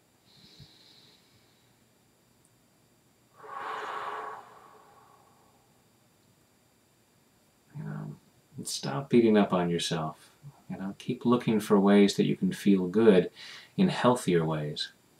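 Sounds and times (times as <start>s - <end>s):
deep breath: 0.3s - 1.8s, 3.4s - 5.7s, 13.4s - 13.8s
short faint breath: 3.4s - 5.6s, 13.4s - 13.7s
speech: 8.7s - 10.3s, 11.0s - 15.0s.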